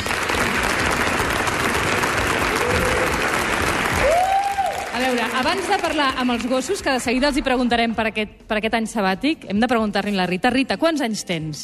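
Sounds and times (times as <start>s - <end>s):
audience applause: 0.0s - 6.8s
speech: 5.1s - 11.6s.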